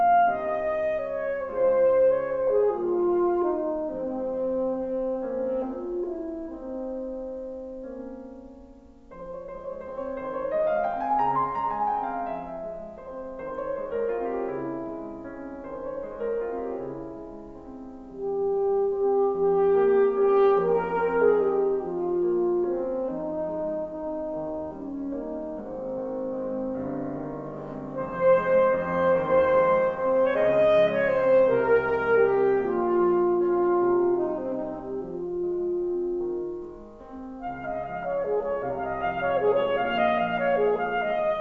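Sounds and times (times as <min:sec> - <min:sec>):
saxophone: 0:00.0 - 0:08.0, 0:09.1 - 0:41.3.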